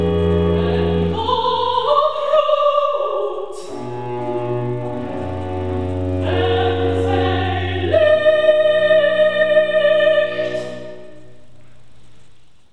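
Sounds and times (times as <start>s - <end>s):
alto singing recitative: 0.0s - 11.4s.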